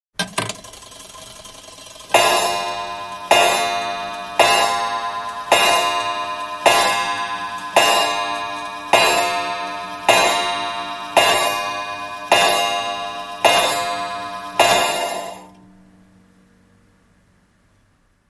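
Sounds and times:
19th century wall clock striking 12 o'clock on a brass strip bell: 0:02.1 - 0:15.6.

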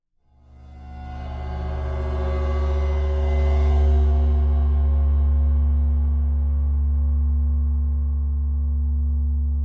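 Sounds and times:
bowed ride cymbal: 0:00.4 - 0:09.5.

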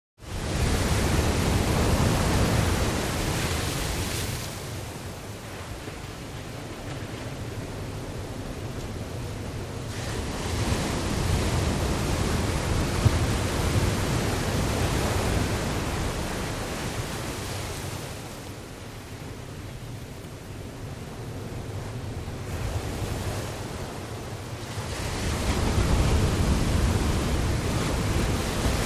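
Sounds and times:
large waves crashing: 0:00.2 - 0:28.8.

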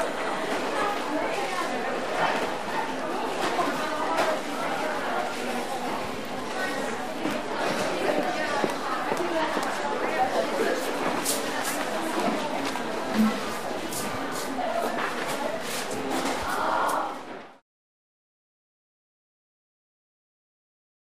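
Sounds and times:
medium to distant walla in a very busy large department store: 0:00.0 - 0:17.6
footsteps in a large department store: 0:07.2 - 0:17.1.

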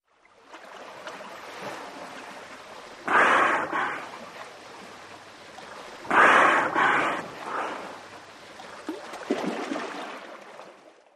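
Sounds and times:
dolphins swimming: 0:00.4 - 0:10.8
dolphin blowhole noises: 0:03.0 - 0:04.2, 0:06.0 - 0:08.1.

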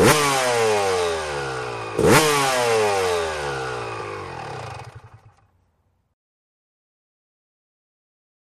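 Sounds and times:
250 motocross motorcycle engine: 0:00.0 - 0:05.7.

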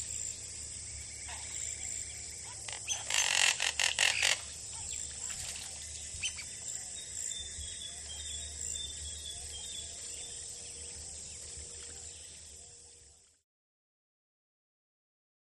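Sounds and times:
birds clucking in a pond: 0:01.2 - 0:06.6.

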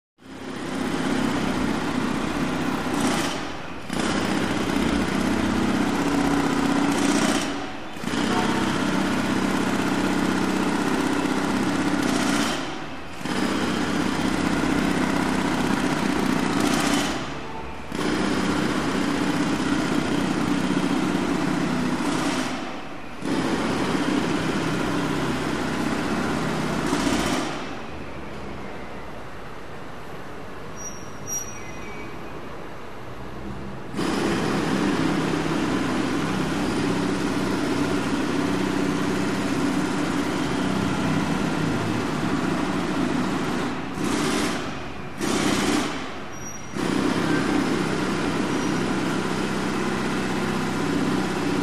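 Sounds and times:
medium jackhammer: 0:00.2 - 0:28.0, 0:33.9 - 0:51.6
large construction site noise: 0:00.2 - 0:51.6.

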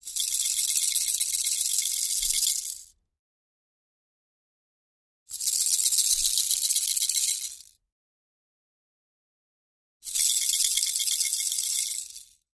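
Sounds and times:
toy rattle shaking: 0:00.0 - 0:03.0, 0:05.3 - 0:07.8, 0:10.0 - 0:12.4.

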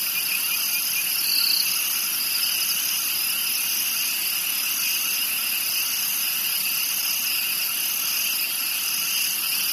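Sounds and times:
crickets trilling in a dense chorus: 0:00.0 - 0:09.7.

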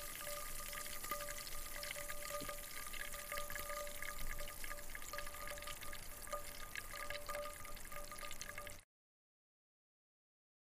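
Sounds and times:
fizzing swirling bubbles: 0:00.0 - 0:08.8.

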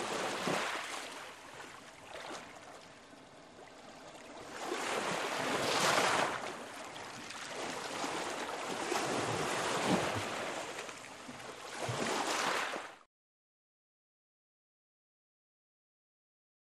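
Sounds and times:
water lapping: 0:00.0 - 0:13.0.

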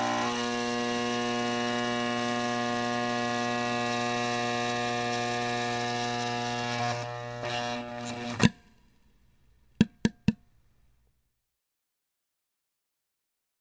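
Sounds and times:
electric air pump: 0:00.0 - 0:08.6.

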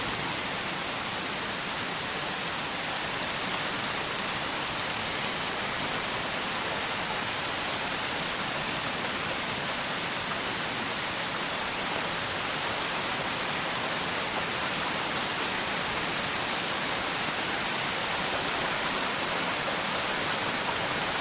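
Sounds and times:
very heavy rain: 0:00.0 - 0:21.1.

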